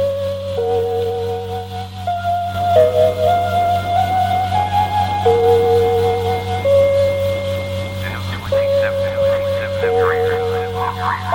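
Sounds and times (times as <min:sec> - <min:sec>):
wavering tone stepping between pitches on shortwave radio: 0:00.0 - 0:11.3
brighter warbling bursts: 0:02.8 - 0:11.3
shortwave radio hum and hiss at night: 0:06.6 - 0:11.3
faint garbled voice-like chatter on shortwave radio: 0:08.0 - 0:11.3.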